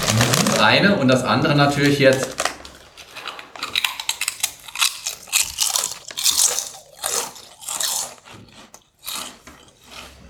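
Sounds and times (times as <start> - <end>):
potato chips crunching while eaten: 0.0 - 10.2
speech: 0.1 - 2.4.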